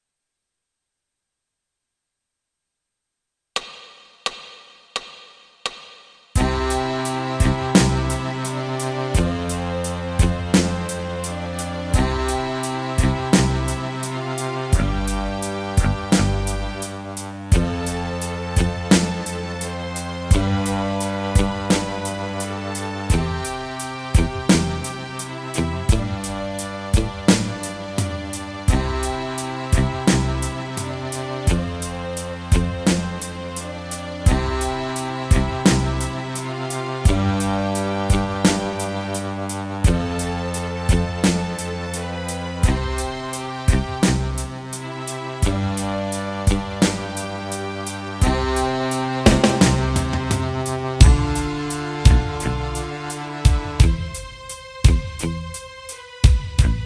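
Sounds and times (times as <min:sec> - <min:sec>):
accordion bass notes: 0:06.4 - 0:56.8.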